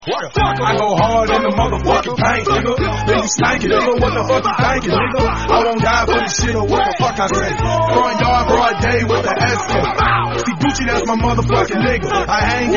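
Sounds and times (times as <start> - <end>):
song: 0.0 - 12.7.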